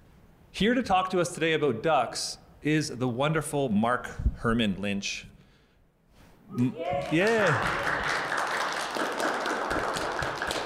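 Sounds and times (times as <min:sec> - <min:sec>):
speech: 0:00.6 - 0:05.3, 0:06.5 - 0:08.2
audience applause: 0:06.8 - 0:10.6.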